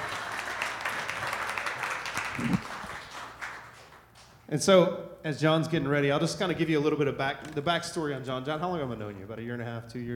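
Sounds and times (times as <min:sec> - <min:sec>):
crowd applauding: 0:00.0 - 0:04.2
speech: 0:02.4 - 0:02.7, 0:04.5 - 0:10.1.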